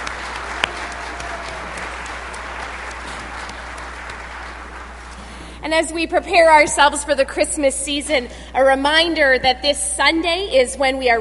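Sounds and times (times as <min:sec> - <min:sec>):
church congregation applauding musicians at a Sunday Advent service: 0:00.0 - 0:05.5
speech: 0:05.7 - 0:11.1.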